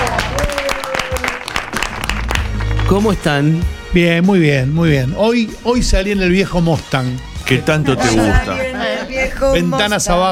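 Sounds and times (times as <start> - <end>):
audience applause: 0.0 - 3.2
speech: 2.9 - 10.3.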